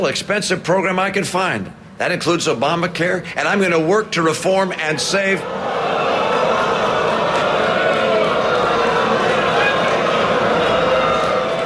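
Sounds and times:
speech: 0.0 - 5.7
audience booing: 4.9 - 11.6.

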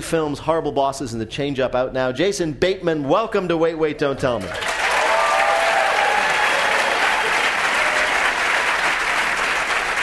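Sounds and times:
speech: 0.0 - 4.8
studio audience applause: 4.4 - 10.0.

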